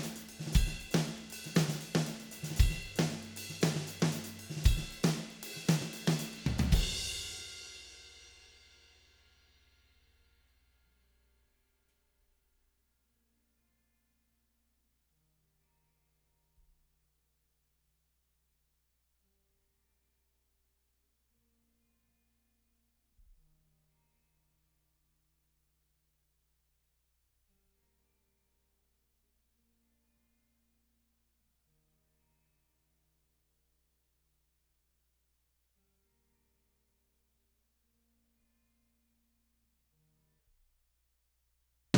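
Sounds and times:
drums: 0.0 - 9.6.

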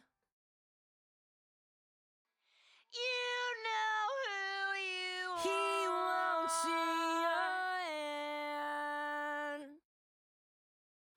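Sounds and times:
backing vocals: 2.9 - 9.6.

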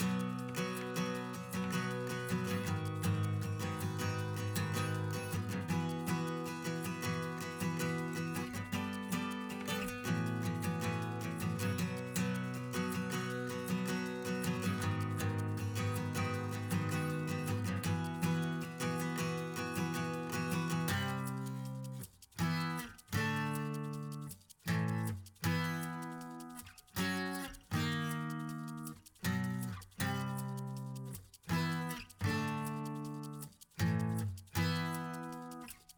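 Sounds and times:
acoustic percussion: 0.0 - 35.9.

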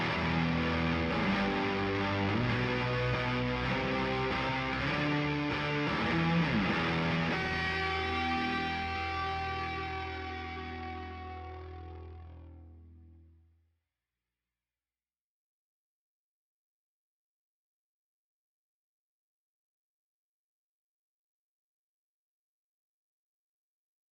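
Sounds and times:
guitars: 0.0 - 13.4.

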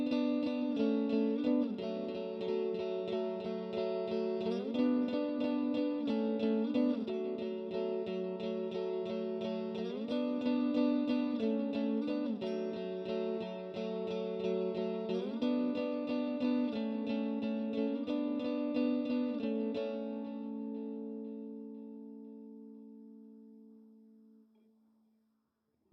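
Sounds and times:
lead guitars: 0.0 - 24.5.

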